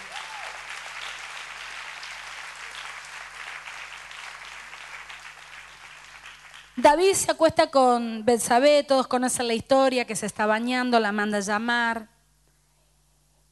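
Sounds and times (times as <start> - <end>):
audience applause: 0.0 - 6.8
speech: 6.8 - 12.1.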